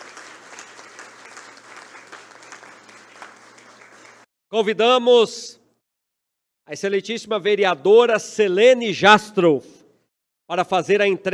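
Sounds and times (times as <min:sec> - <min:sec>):
audience applause: 0:00.0 - 0:04.3
speech: 0:04.5 - 0:05.6, 0:06.7 - 0:09.7, 0:10.5 - 0:11.3.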